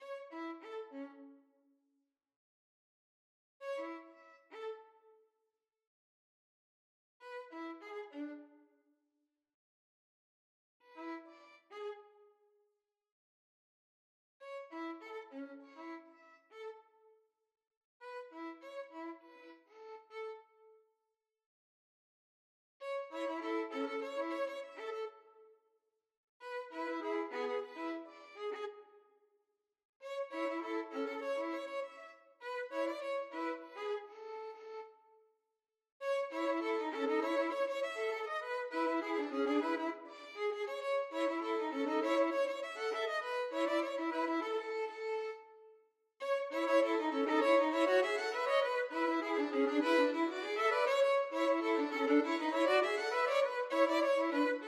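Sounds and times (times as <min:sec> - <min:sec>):
violin duet: 0:23.0 - 0:25.1, 0:26.5 - 0:28.8, 0:30.1 - 0:34.9, 0:36.0 - 0:45.6, 0:46.2 - 0:54.6.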